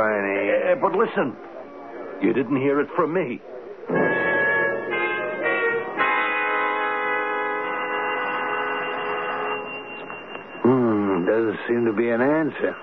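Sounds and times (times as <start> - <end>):
speech: 0.0 - 1.5, 2.2 - 4.2, 11.4 - 12.8
doorbell ringing: 3.9 - 12.8.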